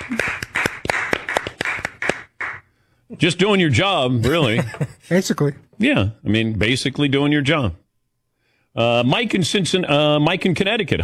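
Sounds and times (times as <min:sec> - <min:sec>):
hand clapping: 0:00.0 - 0:02.7
speech: 0:03.2 - 0:07.8, 0:08.8 - 0:11.0.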